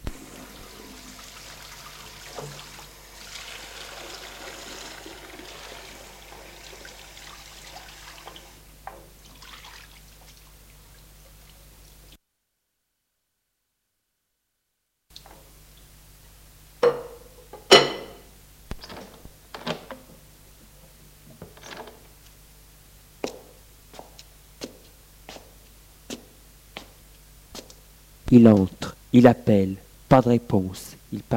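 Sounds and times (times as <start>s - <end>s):
water running from a tap while washing dishes: 0.1s - 8.6s, 9.2s - 10.4s
dishes clinking: 16.8s - 18.3s
speech: 28.3s - 31.3s.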